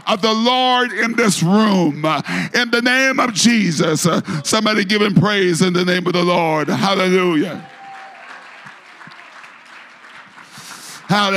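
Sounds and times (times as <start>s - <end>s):
speech: 0.1s - 7.7s, 11.1s - 11.3s
audience clapping: 6.5s - 11.3s.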